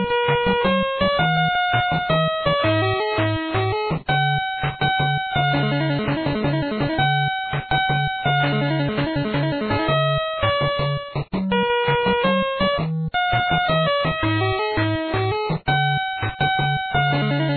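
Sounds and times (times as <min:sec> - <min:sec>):
background music: 0:00.0 - 0:17.5.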